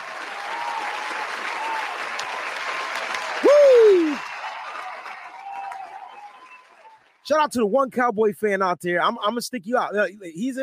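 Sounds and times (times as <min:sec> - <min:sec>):
applause: 0:00.0 - 0:07.2
speech: 0:07.3 - 0:10.6.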